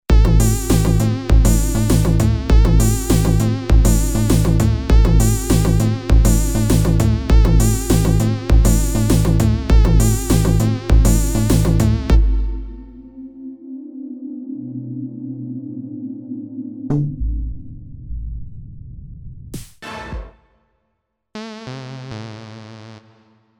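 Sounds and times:
80s style music: 0.1 - 13.5.

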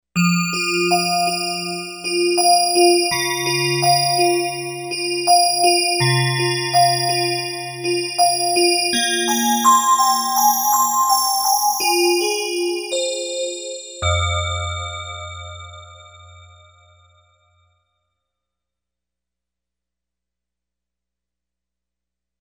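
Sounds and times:
bells: 0.2 - 16.8.

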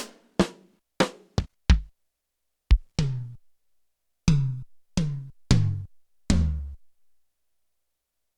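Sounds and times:
RX7 drum machine toms: 0.0 - 1.9, 2.7 - 3.4, 4.3 - 6.7
snare drum hits: 0.0 - 1.9.

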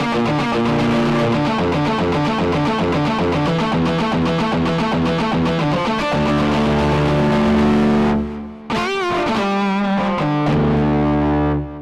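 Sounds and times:
lead guitar on a Korg N364: 0.0 - 11.7.

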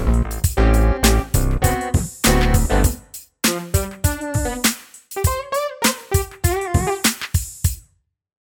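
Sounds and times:
funk jam: 0.0 - 7.8.

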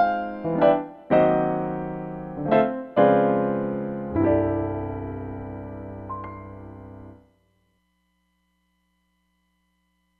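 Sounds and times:
studio grand piano: 0.0 - 7.2.

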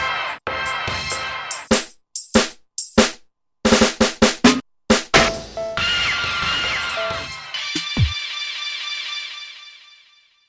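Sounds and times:
hip-hop music: 0.0 - 2.9, 4.4 - 9.6.

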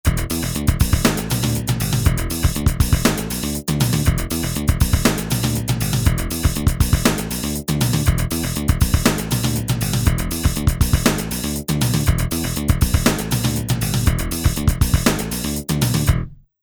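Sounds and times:
fusion music: 0.1 - 16.2.

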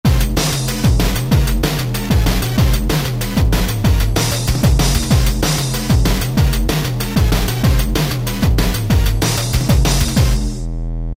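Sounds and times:
Korg ES-1 steppa beat: 0.0 - 10.7.

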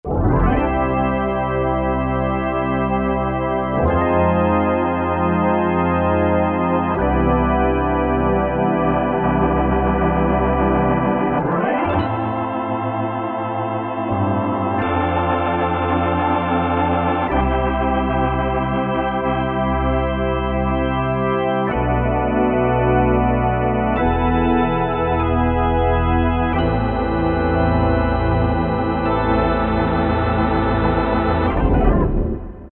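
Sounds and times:
drawbar organ: 0.1 - 32.7.

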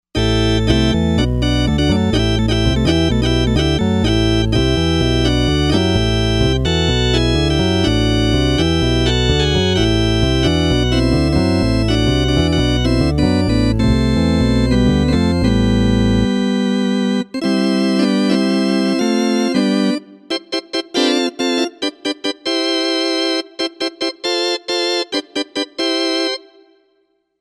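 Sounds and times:
combo organ: 0.1 - 26.8.

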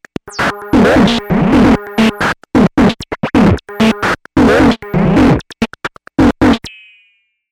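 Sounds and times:
beats: 0.1 - 2.4, 3.3 - 6.7.

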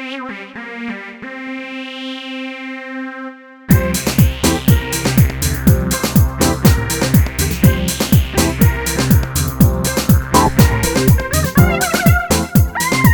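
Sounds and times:
deep house synth lead on a Korg Radias-R: 3.7 - 13.1.

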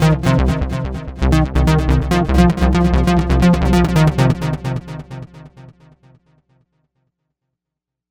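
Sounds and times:
deep trance bass on a Novation UltraNova synthesizer: 0.0 - 5.7.

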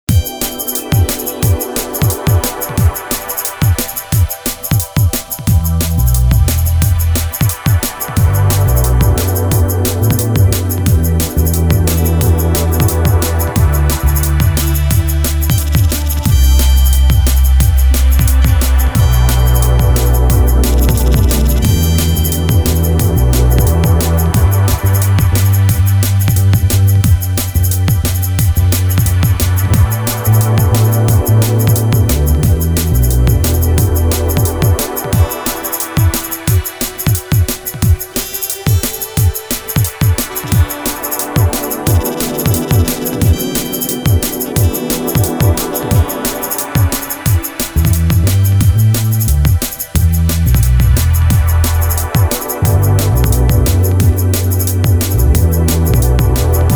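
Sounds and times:
jazz step drum and bass music: 0.0 - 56.7.

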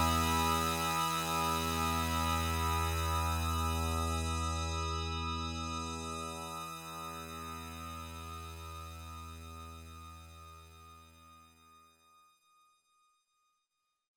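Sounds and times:
synthesizer filter drone from a factory patch: 0.0 - 11.0.

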